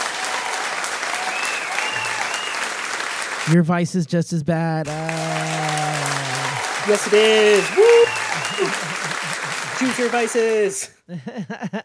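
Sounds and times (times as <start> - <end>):
audience applause: 0.0 - 3.6, 4.9 - 10.9
speech: 3.5 - 6.1, 6.8 - 9.1, 9.8 - 11.8
laughter: 4.9 - 11.8.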